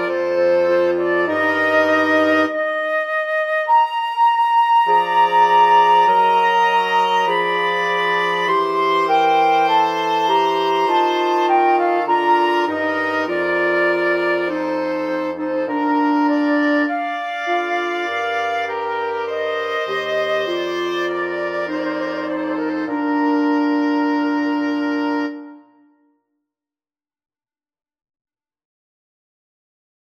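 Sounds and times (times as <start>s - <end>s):
wind quartet playing a classical piece: 0.0s - 26.0s.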